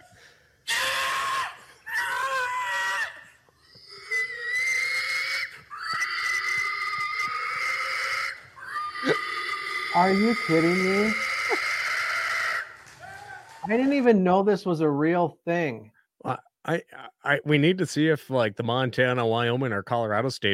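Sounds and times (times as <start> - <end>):
person hog calling at the 2010 Illinois State Fair: 0.7 - 3.2, 3.9 - 13.4
speech: 10.0 - 11.3, 13.7 - 20.5.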